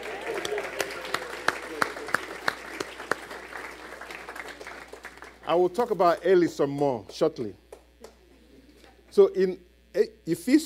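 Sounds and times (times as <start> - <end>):
audience applause welcoming a guest: 0.0 - 6.2
speech: 5.5 - 7.6, 9.2 - 10.6.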